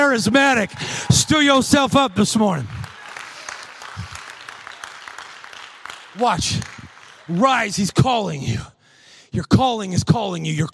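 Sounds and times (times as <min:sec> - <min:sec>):
audience clapping and shouting: 0:00.0 - 0:08.6
speech: 0:00.1 - 0:02.8, 0:06.2 - 0:08.7, 0:09.3 - 0:10.7.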